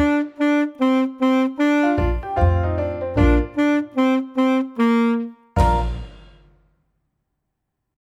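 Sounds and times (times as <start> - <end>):
saxophone: 0.0 - 6.0.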